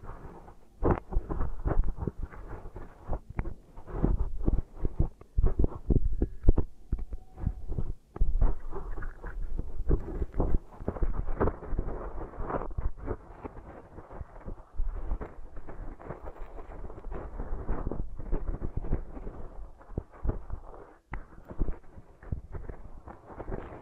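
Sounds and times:
beeswax pressed and kneaded against a microphone: 0.0s - 23.8s.

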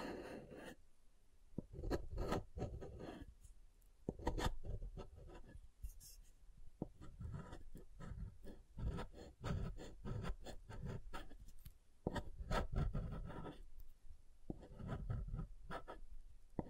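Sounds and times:
soft and hard soap being tapped and carved: 1.5s - 3.1s, 4.0s - 5.6s, 6.8s - 13.8s, 14.4s - 16.6s.

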